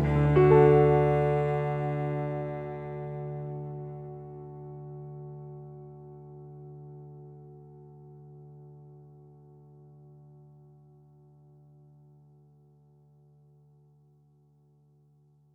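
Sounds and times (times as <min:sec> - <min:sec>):
cello: 0:00.0 - 0:12.0
piano: 0:00.0 - 0:13.9.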